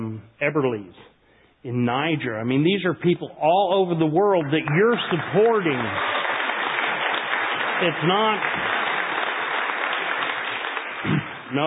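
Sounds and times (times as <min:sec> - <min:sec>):
speech: 0:00.2 - 0:06.2, 0:07.8 - 0:08.7, 0:11.0 - 0:11.6
audience applause: 0:04.2 - 0:11.6.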